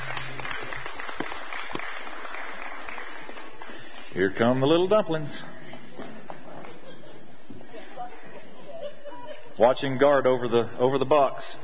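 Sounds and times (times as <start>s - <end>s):
audience applause: 0.0s - 4.1s
speech: 4.2s - 5.6s, 9.6s - 11.6s
laughter: 5.8s - 9.6s.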